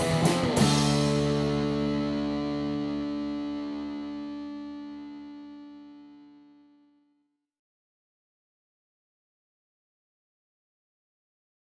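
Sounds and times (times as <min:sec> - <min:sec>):
instrumental medley: 0:00.0 - 0:05.2.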